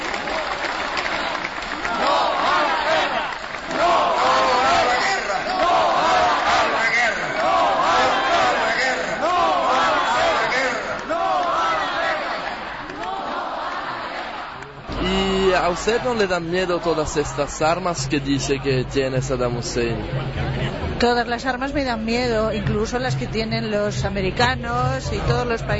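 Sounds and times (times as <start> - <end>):
protest crowd chanting an anti-war slogan: 0.2 - 17.7
speech: 15.9 - 25.7.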